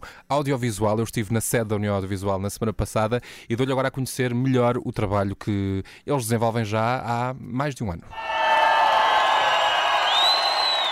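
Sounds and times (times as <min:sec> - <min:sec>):
speech: 0:00.3 - 0:08.4
concert crowd cheering: 0:08.1 - 0:10.8.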